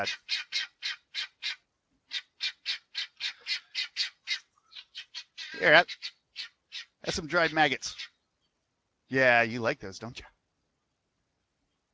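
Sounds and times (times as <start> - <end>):
speech: 0.0 - 0.7, 5.6 - 6.1, 7.0 - 8.0, 9.1 - 10.4
chickens squawking: 0.0 - 8.2.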